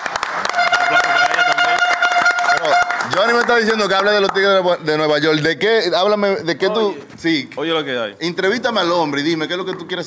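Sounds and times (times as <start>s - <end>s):
hands clapping: 0.0s - 4.7s, 9.3s - 10.0s
speech: 3.2s - 10.0s.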